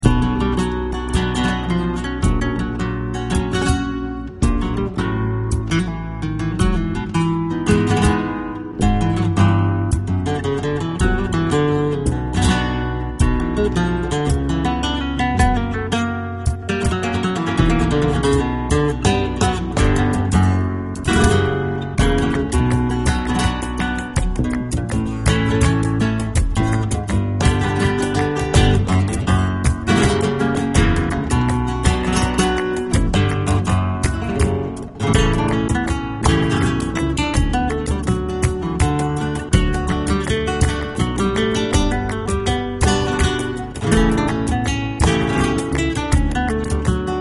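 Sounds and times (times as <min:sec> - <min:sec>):
flamenco guitar: 0:00.0 - 0:47.1.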